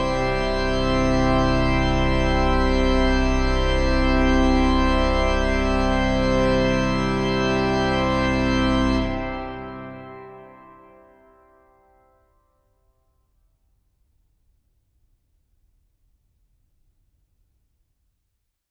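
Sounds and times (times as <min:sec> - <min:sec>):
organ fugue: 0:00.0 - 0:11.7.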